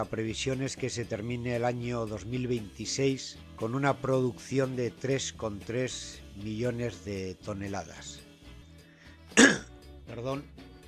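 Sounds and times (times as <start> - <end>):
speech: 0.0 - 8.2, 9.3 - 10.7
smoker clearing his throat and coughing: 9.4 - 9.7.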